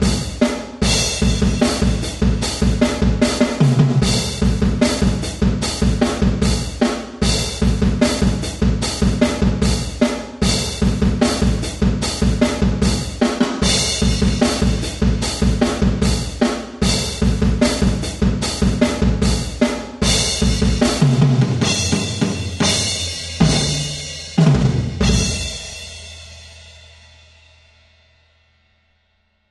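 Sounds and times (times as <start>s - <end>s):
song drums: 0.0s - 28.5s.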